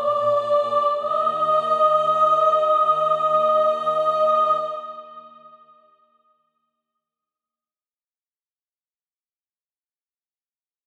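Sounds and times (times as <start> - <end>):
soprano singing practice music: 0.0 - 5.7.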